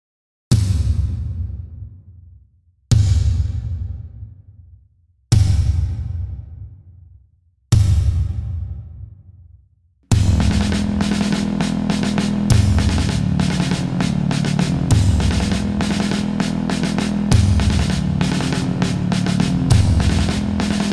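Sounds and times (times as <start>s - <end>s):
drums: 0.5s - 2.0s, 2.9s - 4.4s, 5.3s - 6.7s, 7.8s - 9.1s, 10.1s - 20.9s.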